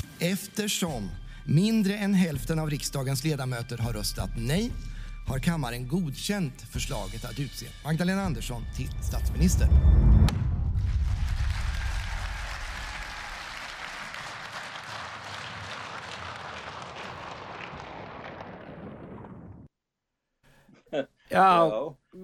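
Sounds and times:
speech: 0:00.2 - 0:10.4, 0:21.0 - 0:22.0
parliament applause: 0:10.8 - 0:19.6.

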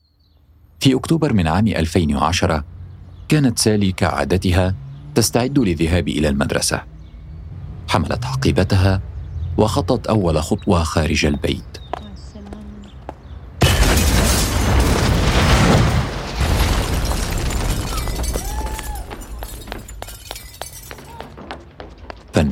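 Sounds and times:
speech: 0:00.8 - 0:06.9, 0:07.9 - 0:11.9
car bomb explosion in front of a house: 0:13.6 - 0:19.9
shattering glass: 0:13.6 - 0:21.8.

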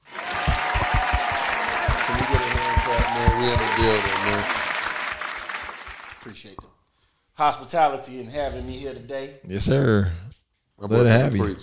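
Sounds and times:
audience hand clapping: 0:00.0 - 0:06.5
speech: 0:03.4 - 0:04.6, 0:06.3 - 0:06.8, 0:07.4 - 0:11.6.

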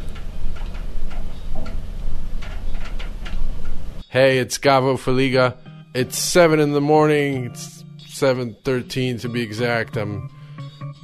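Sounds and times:
rain pattering on a windowsill: 0:00.0 - 0:04.0
low hum: 0:00.0 - 0:08.5
speech: 0:04.1 - 0:10.4.

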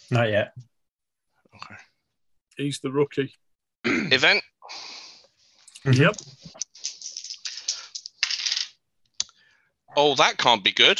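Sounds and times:
speech: 0:00.1 - 0:00.7, 0:01.6 - 0:01.9, 0:02.6 - 0:05.0, 0:05.8 - 0:06.6, 0:10.0 - 0:10.9
dice rolling on a hard table: 0:07.1 - 0:08.8.

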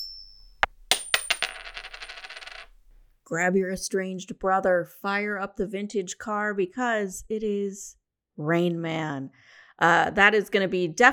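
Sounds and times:
coin tossed and spinning on a hard surface: 0:00.0 - 0:03.0
speech: 0:03.3 - 0:11.1.

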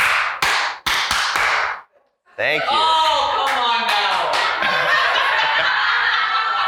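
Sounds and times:
hand clap: 0:00.0 - 0:01.9, 0:03.0 - 0:04.7
speech: 0:02.4 - 0:03.0
laughter: 0:02.4 - 0:06.6.

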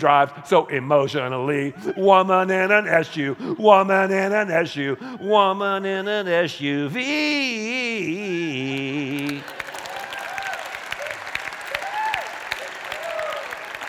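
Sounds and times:
speech: 0:00.0 - 0:09.6
person singing: 0:00.0 - 0:09.7
audience clapping: 0:08.5 - 0:13.8.

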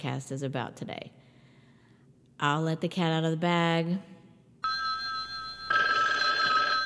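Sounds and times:
speech: 0:00.0 - 0:01.2, 0:02.4 - 0:04.1
telephone ringing: 0:04.6 - 0:06.8.

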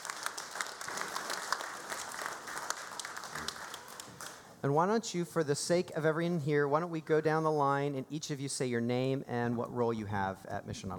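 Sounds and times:
church congregation applauding welcoming guests: 0:00.0 - 0:04.6
speech: 0:04.6 - 0:10.9.

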